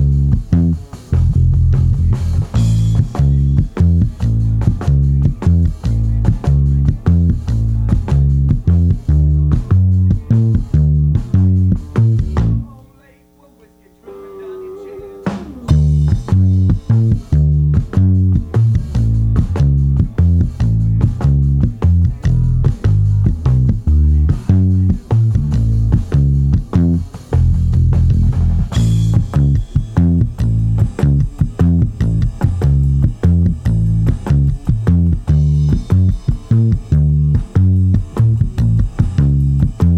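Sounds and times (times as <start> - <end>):
bass amp: 0.0 - 39.9.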